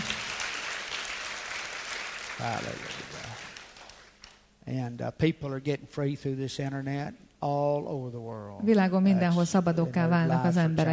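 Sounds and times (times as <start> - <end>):
congregation applauding in a church: 0.0 - 4.4
speech: 2.4 - 3.6, 4.7 - 10.9.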